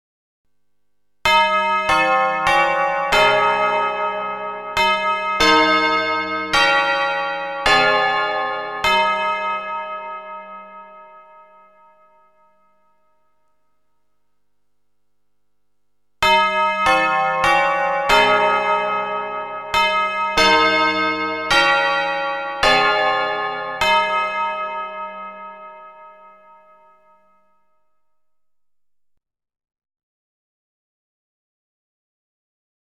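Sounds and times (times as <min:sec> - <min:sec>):
anthem played on Spasskaya Tower bells of the Kremlin: 0:01.3 - 0:13.5, 0:16.2 - 0:27.5.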